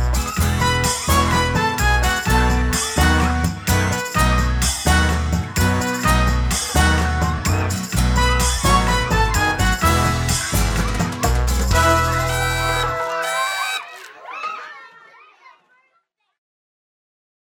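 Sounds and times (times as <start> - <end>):
birthday karaoke song: 0.0 - 13.9.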